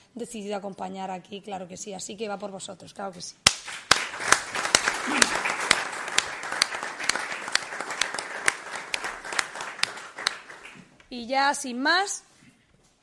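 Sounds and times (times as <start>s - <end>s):
speech: 0.2s - 3.8s, 11.2s - 12.3s
warm audience applause: 3.5s - 11.0s.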